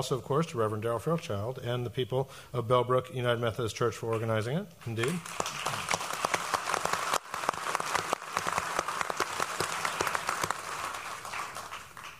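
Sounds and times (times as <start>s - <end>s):
speech: 0.0s - 6.0s
audience applause: 5.0s - 12.1s.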